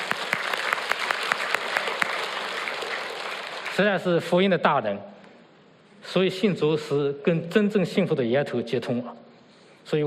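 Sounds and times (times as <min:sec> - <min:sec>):
audience applause: 0:00.0 - 0:03.8
speech: 0:03.8 - 0:05.1, 0:06.1 - 0:09.2, 0:09.9 - 0:10.0.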